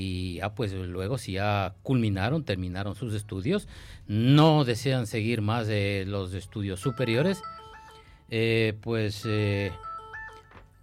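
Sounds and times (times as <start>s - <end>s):
speech: 0.0s - 7.6s, 8.3s - 9.9s
telephone ringtone of an incoming call to a radio station: 6.8s - 8.4s, 9.1s - 10.8s.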